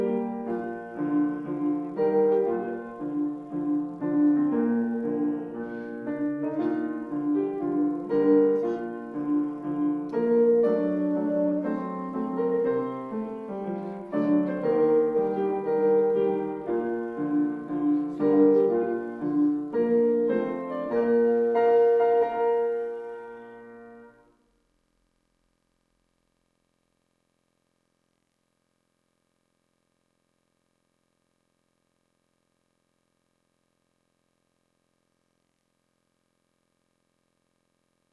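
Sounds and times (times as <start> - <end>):
instrumental music: 0.0 - 24.3.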